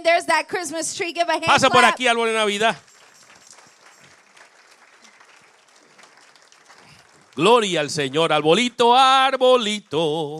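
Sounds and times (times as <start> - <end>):
speech: 0.0 - 3.0, 7.4 - 10.3
audience applause: 1.5 - 8.8.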